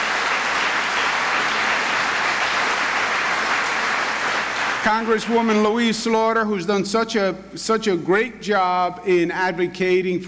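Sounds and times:
audience applause: 0.0 - 5.6
speech: 4.8 - 10.2.

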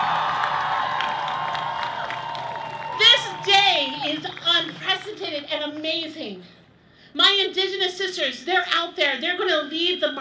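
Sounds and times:
crowd applause and cheering: 0.0 - 5.0
speech: 5.1 - 10.1.

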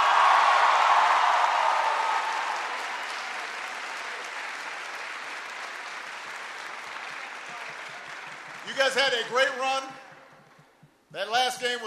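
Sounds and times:
crowd applause: 0.0 - 9.6
speech: 8.7 - 10.0, 11.1 - 11.8.

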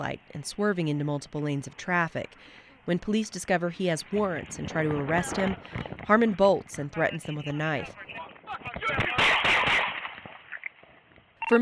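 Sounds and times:
indistinct voices: 0.0 - 9.7
speech: 0.0 - 9.8, 11.5 - 11.6
police gunshots: 8.2 - 10.5.

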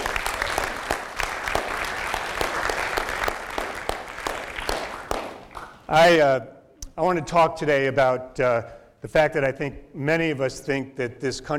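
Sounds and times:
audience applause: 0.0 - 5.9
speech: 5.9 - 11.5.

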